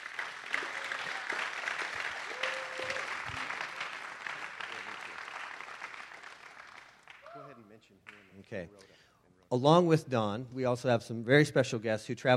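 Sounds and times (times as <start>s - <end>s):
church congregation applauding a guest: 0.0s - 8.5s
speech: 8.5s - 8.9s, 9.5s - 12.3s.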